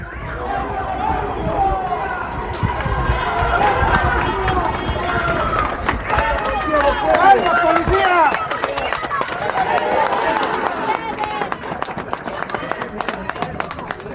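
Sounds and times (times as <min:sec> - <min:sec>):
crowd applauding passing police: 0:00.4 - 0:14.1.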